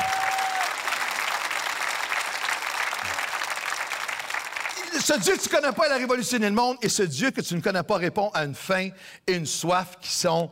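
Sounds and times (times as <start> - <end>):
audience applauding: 0.0 - 5.8
speech: 5.0 - 10.4.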